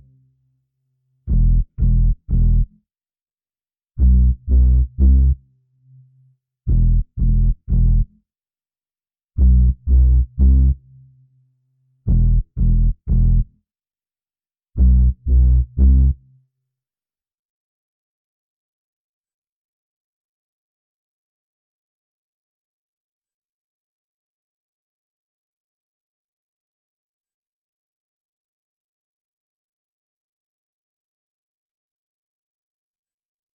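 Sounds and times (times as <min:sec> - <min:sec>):
bass: 0:00.0 - 0:00.2, 0:01.3 - 0:02.8, 0:04.0 - 0:08.2, 0:09.4 - 0:11.4, 0:12.1 - 0:13.6, 0:14.8 - 0:16.3.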